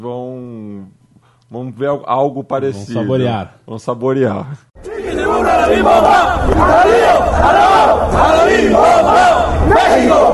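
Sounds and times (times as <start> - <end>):
speech: 0.0 - 0.2, 1.7 - 4.7, 5.6 - 10.3
Mexican football fans chanting: 4.8 - 10.3.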